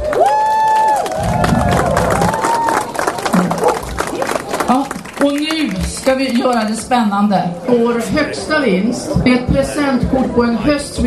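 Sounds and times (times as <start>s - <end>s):
whistles and cheers: 0.0s - 3.2s
crowd applause: 0.0s - 6.8s
people shouting: 0.9s - 3.6s
speech: 4.7s - 11.0s.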